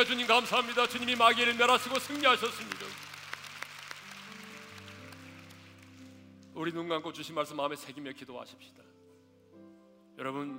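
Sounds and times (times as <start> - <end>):
speech: 0.0 - 2.8, 6.6 - 8.9, 10.2 - 10.5
audience applause: 0.0 - 6.2.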